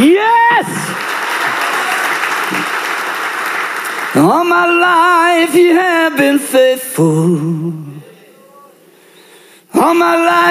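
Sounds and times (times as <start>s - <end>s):
audience clapping: 0.0s - 6.8s
speech: 4.2s - 7.9s, 9.8s - 10.4s.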